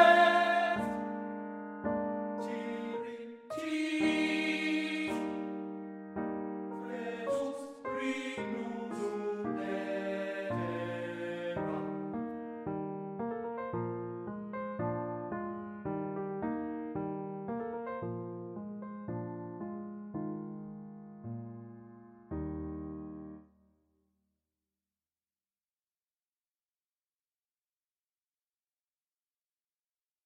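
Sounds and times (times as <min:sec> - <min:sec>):
person singing a lullaby: 0:00.0 - 0:01.1, 0:02.4 - 0:05.5, 0:06.8 - 0:12.0
piano: 0:00.0 - 0:23.6.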